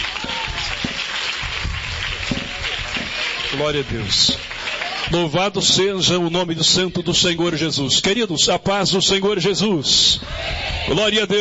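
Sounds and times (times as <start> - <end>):
audience applause: 0.0 - 5.4
speech: 3.5 - 4.5, 5.1 - 11.3.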